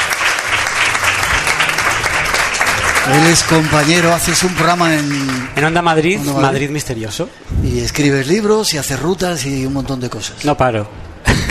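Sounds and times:
audience applause: 0:00.0 - 0:05.8
speech: 0:03.1 - 0:11.4.

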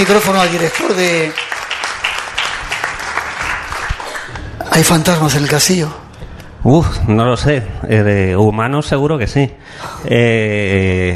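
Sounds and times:
speech: 0:00.0 - 0:01.5, 0:04.8 - 0:06.0, 0:06.6 - 0:11.1
audience applause: 0:00.0 - 0:04.9.

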